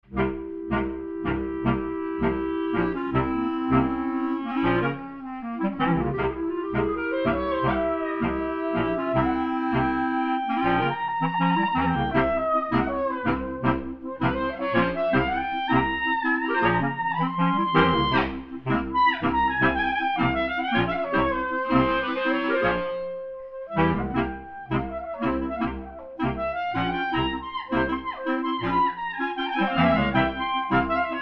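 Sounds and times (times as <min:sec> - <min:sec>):
freilach klezmer dance tune without percussion: 0:00.0 - 0:31.2.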